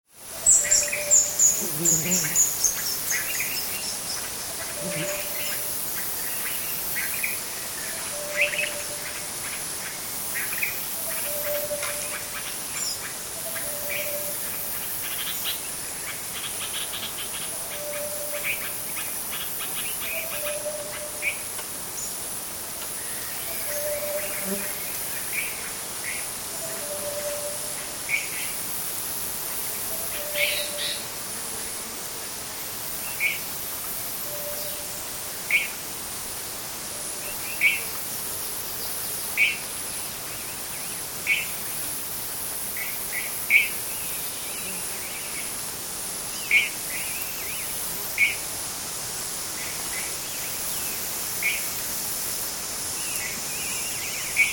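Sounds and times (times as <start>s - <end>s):
tropical insects: 0.0s - 54.5s
tropical bird calls: 0.4s - 22.2s, 22.8s - 28.5s, 29.9s - 31.0s.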